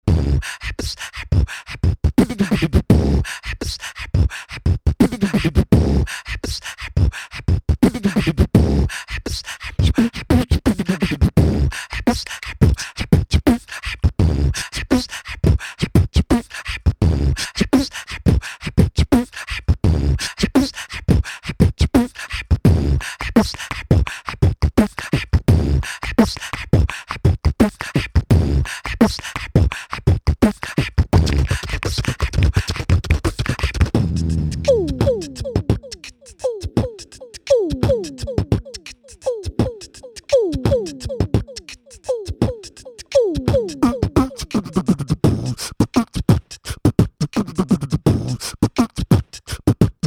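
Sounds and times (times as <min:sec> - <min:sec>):
beatboxing: 0:00.1 - 0:50.0.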